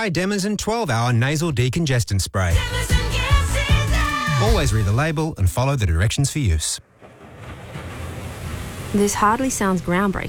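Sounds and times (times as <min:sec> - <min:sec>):
speech: 0:00.0 - 0:03.2, 0:04.4 - 0:06.9, 0:08.9 - 0:10.2
ocean waves: 0:06.8 - 0:10.2.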